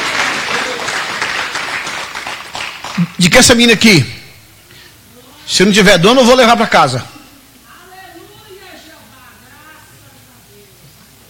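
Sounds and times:
large crowd applauding: 0:00.0 - 0:03.3
speech: 0:03.0 - 0:04.2, 0:05.5 - 0:07.1.

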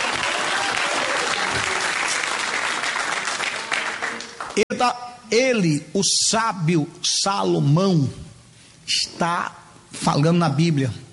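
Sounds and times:
audience applause: 0:00.0 - 0:04.6
speech: 0:04.8 - 0:08.2, 0:08.9 - 0:11.0.

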